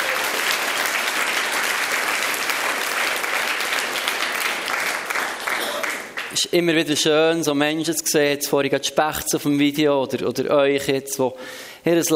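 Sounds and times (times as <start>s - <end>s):
audience applause: 0.0s - 6.4s
speech: 6.4s - 12.1s.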